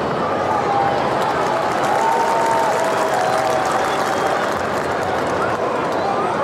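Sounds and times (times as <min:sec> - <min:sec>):
rugby league crowd roaring: 0:00.1 - 0:06.4.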